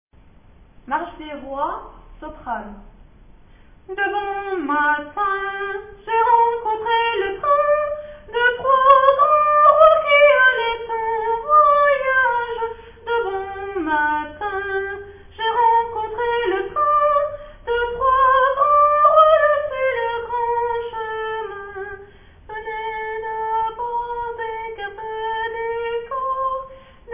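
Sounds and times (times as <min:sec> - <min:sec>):
soprano singing: 0:03.9 - 0:27.1.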